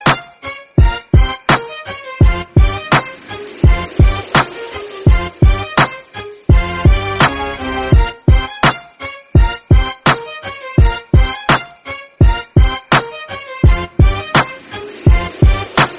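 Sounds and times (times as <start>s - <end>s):
background music: 0.0s - 15.9s.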